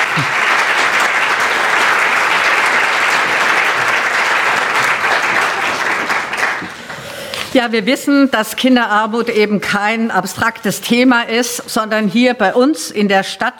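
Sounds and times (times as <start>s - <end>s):
audience applause: 0.0s - 7.1s
speech: 7.6s - 13.5s.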